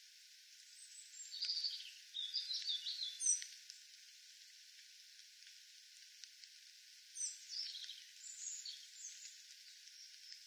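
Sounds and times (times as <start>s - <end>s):
European robin Erithacus rubecula singing high tinkling phrases: 0.7s - 3.5s, 7.2s - 10.3s.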